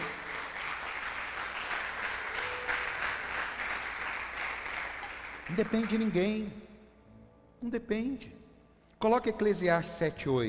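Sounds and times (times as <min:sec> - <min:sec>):
audience applauding: 0:00.0 - 0:06.3
speech: 0:05.5 - 0:06.7, 0:07.6 - 0:08.4, 0:09.0 - 0:10.4.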